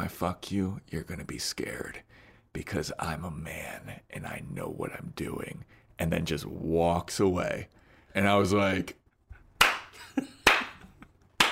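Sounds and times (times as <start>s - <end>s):
speech: 0.1s - 9.0s, 10.2s - 10.4s
slow clapping: 9.6s - 11.5s.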